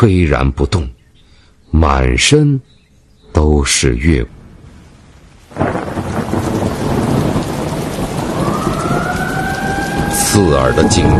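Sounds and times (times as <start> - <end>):
speech: 0.0 - 1.0, 1.7 - 4.4, 10.4 - 11.1
heavy rain hitting umbrellas: 4.6 - 11.1.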